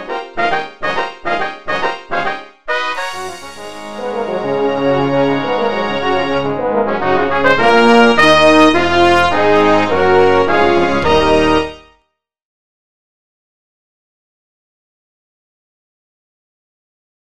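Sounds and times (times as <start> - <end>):
festive short brass fanfare: 0.0 - 12.0.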